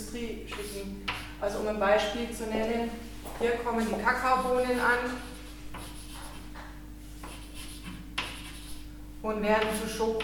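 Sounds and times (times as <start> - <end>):
speech: 0.1 - 5.3, 9.2 - 10.2
writing on a board: 0.5 - 1.3, 4.2 - 8.8, 9.6 - 10.2.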